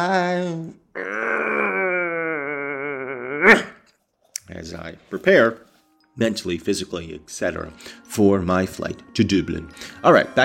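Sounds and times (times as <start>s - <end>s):
speech: 0.0s - 1.2s, 3.5s - 3.7s, 4.6s - 10.4s
person yawning and stretching with a long voiced groan: 0.9s - 3.9s.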